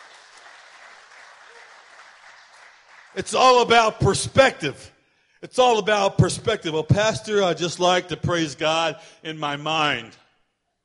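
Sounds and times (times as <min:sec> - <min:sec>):
audience hand clapping: 0:00.0 - 0:04.0
speech: 0:03.1 - 0:10.2.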